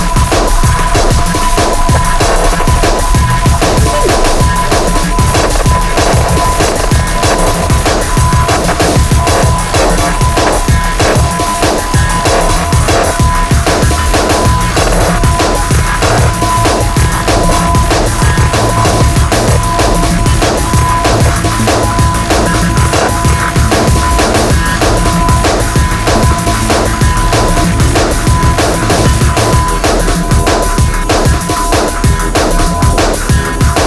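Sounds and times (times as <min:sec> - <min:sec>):
drums: 0:00.0 - 0:33.8
noise: 0:00.0 - 0:33.8.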